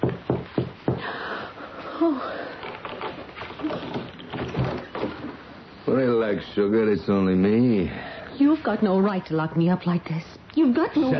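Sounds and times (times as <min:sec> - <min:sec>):
soft knocks on a door: 0:00.0 - 0:01.0
hiss: 0:00.0 - 0:11.1
speech: 0:02.0 - 0:02.5, 0:05.9 - 0:11.1.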